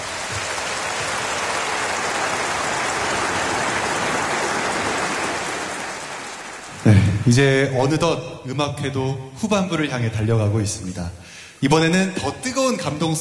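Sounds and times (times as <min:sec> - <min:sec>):
audience applause after piano performance: 0:00.0 - 0:07.6
speech: 0:07.3 - 0:13.2.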